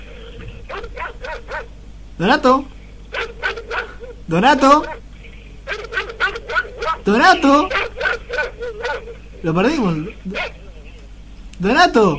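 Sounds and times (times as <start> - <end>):
dog barking: 0.7 - 1.8, 3.1 - 4.2, 4.8 - 5.0, 5.7 - 9.4, 10.2 - 10.8
speech: 2.2 - 2.8, 4.3 - 5.0, 7.1 - 7.9, 8.7 - 10.6, 11.6 - 12.1.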